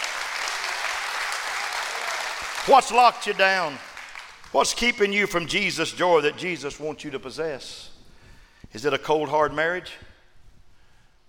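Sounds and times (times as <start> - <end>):
audience clapping hands: 0.0 - 5.0
speech: 2.6 - 3.9, 4.5 - 7.9, 8.7 - 10.1.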